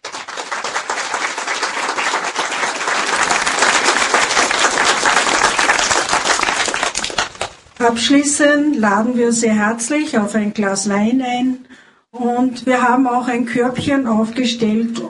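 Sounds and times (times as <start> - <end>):
audience applause: 0.0 - 7.6
speech: 7.8 - 15.0.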